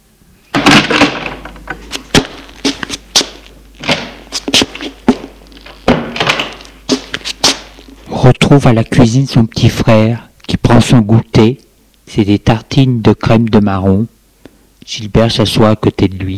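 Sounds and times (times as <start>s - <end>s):
apartment door opening: 0.5s - 2.8s, 3.8s - 7.7s
speech: 8.3s - 14.2s, 14.8s - 16.3s.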